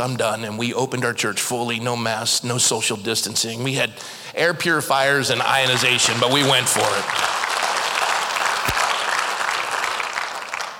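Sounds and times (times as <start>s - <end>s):
speech: 0.0s - 7.4s
audience clapping: 5.4s - 10.7s.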